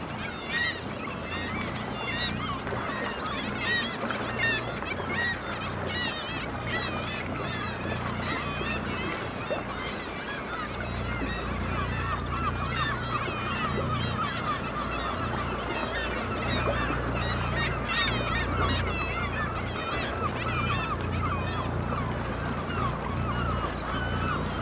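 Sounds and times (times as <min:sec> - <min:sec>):
black-legged kittiwakes calling in a noisy colony: 0:00.0 - 0:24.5.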